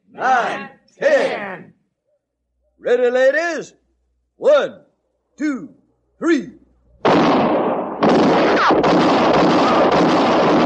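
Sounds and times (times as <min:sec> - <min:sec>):
speech: 0:00.2 - 0:01.6, 0:02.9 - 0:03.8, 0:04.4 - 0:06.6
gunshots: 0:07.0 - 0:10.6.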